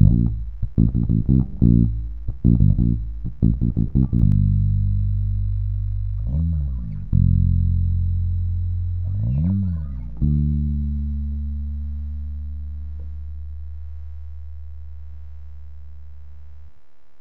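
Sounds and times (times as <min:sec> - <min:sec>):
funky riff in G minor: 0:00.0 - 0:13.2.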